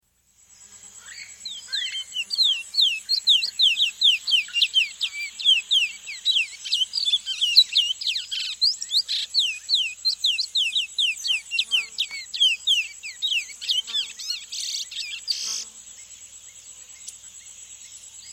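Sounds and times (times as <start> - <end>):
thick-billed seed-finch singing sharply down-slurred whistled notes in South America: 1.1 - 15.6.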